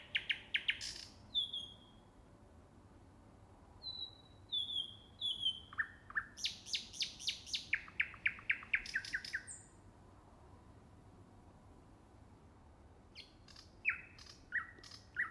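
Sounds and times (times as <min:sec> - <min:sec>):
Finnish birdsong: 0:00.0 - 0:02.0, 0:03.8 - 0:09.8, 0:13.1 - 0:15.3.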